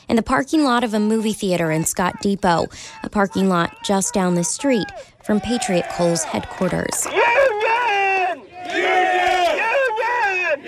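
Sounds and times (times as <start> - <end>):
speech: 0.0 - 7.6
crowd of miners chanting pro-union cheers: 3.1 - 10.6.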